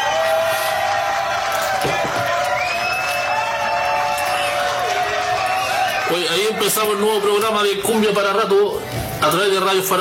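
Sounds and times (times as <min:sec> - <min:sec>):
applause and cheering: 0:00.0 - 0:07.4
speech: 0:06.1 - 0:10.0.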